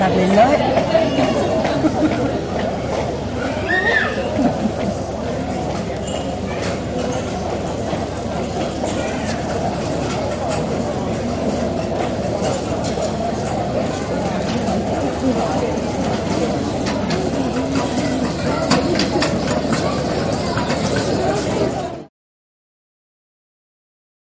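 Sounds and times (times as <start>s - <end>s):
airport interior ambience: 0.0s - 22.1s
laughter: 1.4s - 2.8s, 4.0s - 5.5s.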